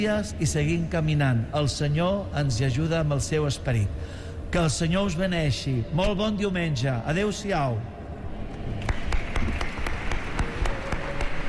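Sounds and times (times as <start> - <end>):
speech: 0.0 - 8.0
audience applause: 8.6 - 11.4.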